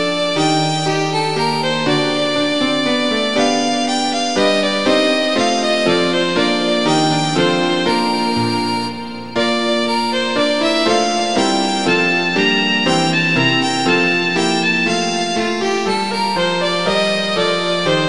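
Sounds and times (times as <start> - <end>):
minuet: 0.0 - 18.0.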